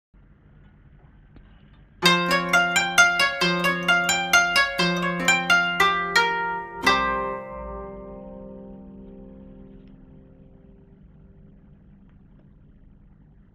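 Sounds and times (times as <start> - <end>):
koto: 2.0 - 11.1.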